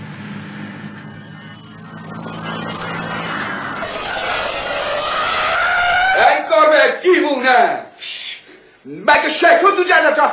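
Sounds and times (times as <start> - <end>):
truck brakes and tires screeching in a skid: 0.0 - 6.7
truck engine roaring: 0.0 - 6.7
speech: 8.9 - 10.3.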